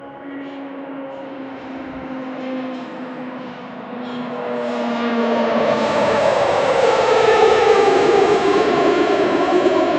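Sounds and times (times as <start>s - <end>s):
airport ambience: 0.0s - 9.9s.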